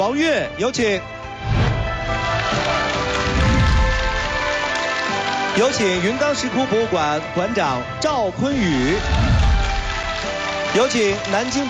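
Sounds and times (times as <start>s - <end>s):
speech: 0.0s - 2.7s, 5.6s - 9.2s, 10.7s - 11.6s
audience applause: 1.8s - 7.0s, 8.6s - 11.6s.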